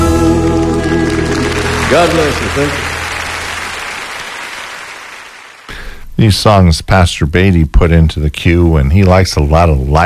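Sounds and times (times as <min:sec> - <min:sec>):
audience applause on a live song recording: 0:00.0 - 0:05.8
speech: 0:01.9 - 0:02.9, 0:06.2 - 0:10.0.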